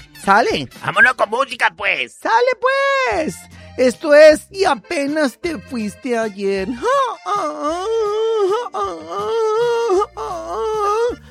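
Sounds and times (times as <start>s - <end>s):
speech: 0.2s - 11.2s
person crying out in pain: 6.7s - 11.3s.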